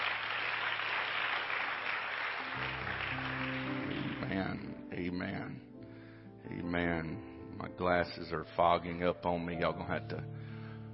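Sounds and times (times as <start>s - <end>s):
hand clapping: 0.0s - 4.7s
speech: 4.3s - 5.7s, 6.5s - 10.4s.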